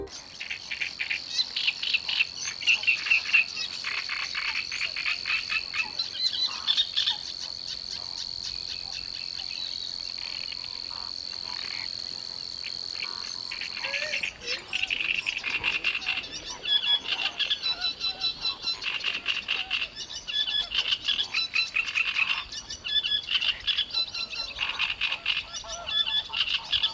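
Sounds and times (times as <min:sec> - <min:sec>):
cricket chirping: 0:00.1 - 0:26.9.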